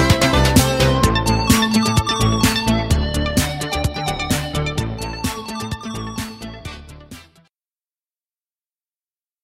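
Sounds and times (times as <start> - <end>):
synthesizer: 0.0 - 7.5.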